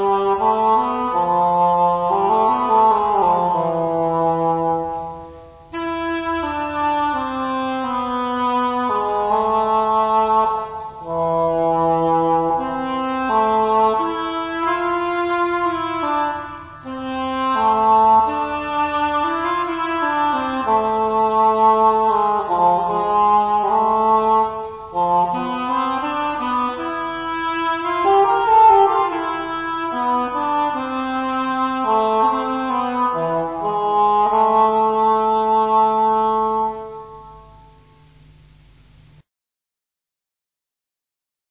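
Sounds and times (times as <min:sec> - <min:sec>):
english horn: 0:00.0 - 0:38.2.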